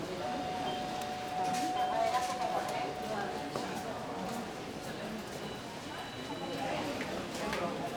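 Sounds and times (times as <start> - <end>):
murmur of people in a sanatorium entrance hall: 0.1 - 7.8
call bells ringing in a sanatorium entrance hall: 0.2 - 5.7.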